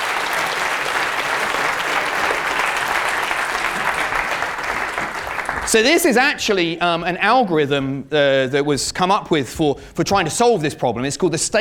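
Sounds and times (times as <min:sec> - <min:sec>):
audience applause: 0:00.0 - 0:06.2
speech: 0:05.7 - 0:11.5.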